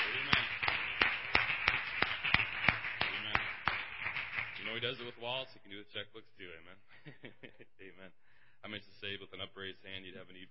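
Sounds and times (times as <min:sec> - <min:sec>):
applause: 0:00.0 - 0:05.2
speech: 0:04.8 - 0:10.4.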